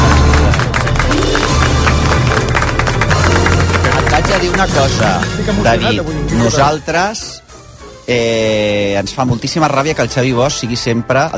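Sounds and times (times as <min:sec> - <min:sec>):
applause: 0:00.0 - 0:05.7
speech: 0:04.4 - 0:07.4, 0:08.1 - 0:11.3.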